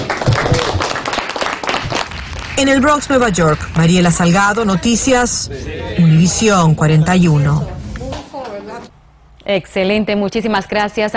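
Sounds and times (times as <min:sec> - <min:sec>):
applause: 0:00.0 - 0:04.4
speech: 0:02.6 - 0:07.8, 0:09.5 - 0:11.1.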